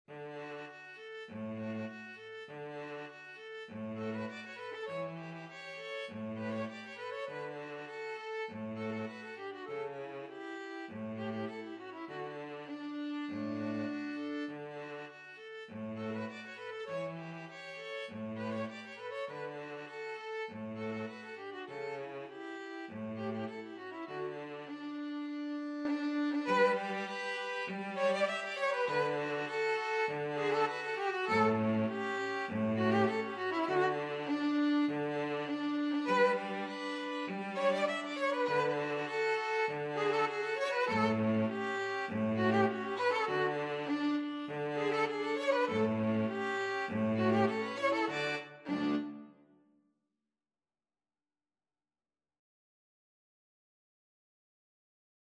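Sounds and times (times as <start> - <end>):
string trio playing: 0.1 - 49.4.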